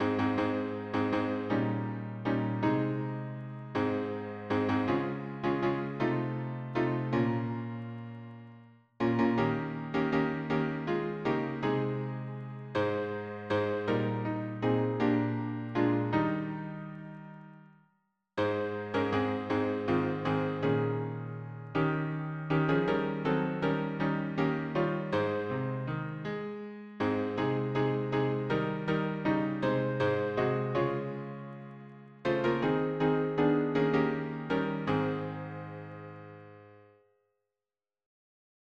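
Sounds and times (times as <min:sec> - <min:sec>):
piano harmony: 0:00.0 - 0:17.7, 0:18.4 - 0:37.0.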